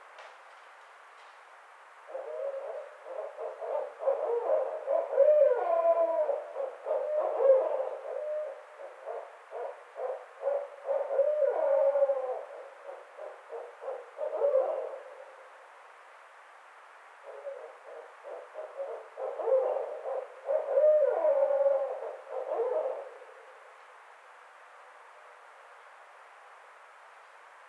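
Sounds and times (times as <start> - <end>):
barred owl calling: 2.1 - 15.5, 17.2 - 23.6.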